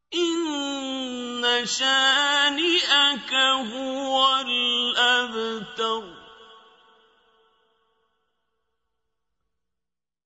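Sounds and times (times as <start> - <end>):
quran recitation: 0.0 - 7.6.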